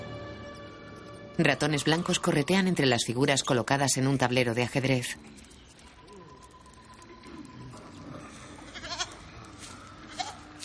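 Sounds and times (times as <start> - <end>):
speech: 1.4 - 5.5
goats bleating: 8.6 - 9.3.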